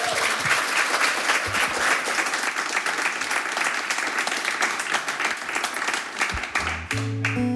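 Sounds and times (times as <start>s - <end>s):
audience applause: 0.0s - 7.4s.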